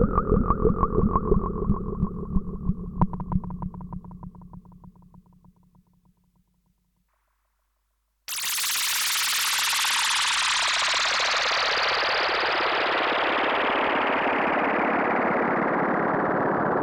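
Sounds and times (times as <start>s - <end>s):
synth pads and effects: 0.0s - 6.0s, 8.3s - 16.7s.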